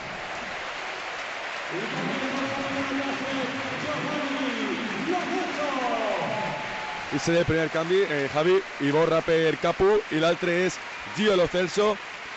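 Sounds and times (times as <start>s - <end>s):
stadium crowd ovation: 0.0s - 12.3s
speech: 1.7s - 2.2s, 7.1s - 12.1s.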